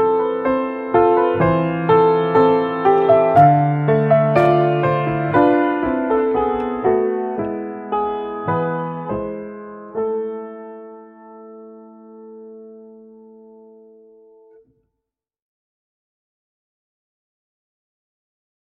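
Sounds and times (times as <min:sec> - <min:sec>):
piano theme: 0:00.0 - 0:14.6.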